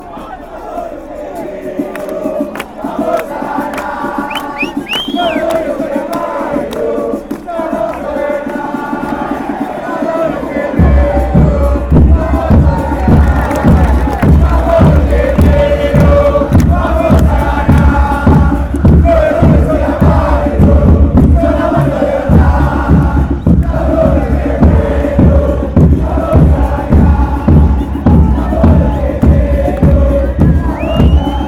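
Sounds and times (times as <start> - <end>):
people chanting: 0.0 - 31.4.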